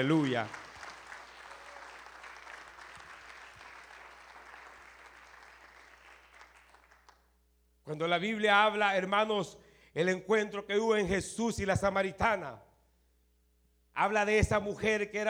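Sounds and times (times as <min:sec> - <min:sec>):
speech: 0:00.0 - 0:00.6, 0:07.9 - 0:12.6, 0:14.0 - 0:15.2
audience applauding: 0:00.0 - 0:07.3.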